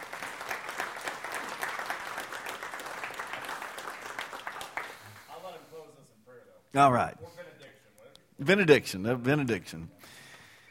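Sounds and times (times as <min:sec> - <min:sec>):
audience applause: 0:00.0 - 0:05.3
speech: 0:06.8 - 0:07.4, 0:08.4 - 0:10.2.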